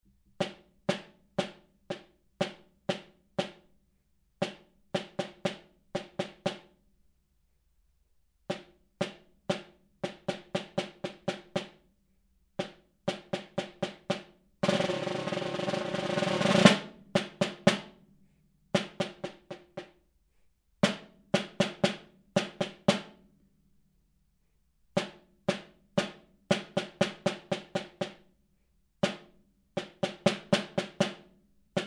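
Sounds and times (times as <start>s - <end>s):
snare drum: 0.3s - 3.7s, 4.4s - 6.8s, 8.5s - 11.8s, 12.6s - 18.0s, 18.8s - 20.0s, 20.8s - 23.2s, 25.0s - 28.3s, 29.0s - 31.8s.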